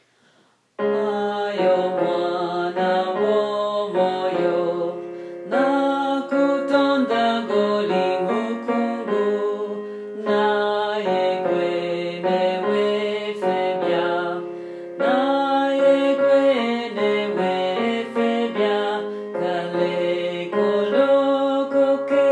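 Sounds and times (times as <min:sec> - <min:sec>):
tenor singing: 0:00.8 - 0:22.3.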